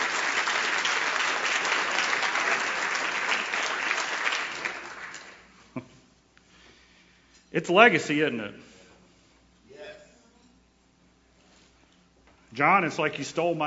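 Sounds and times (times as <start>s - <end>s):
audience round of applause: 0.0s - 5.5s
speech: 7.5s - 8.7s, 12.6s - 13.6s.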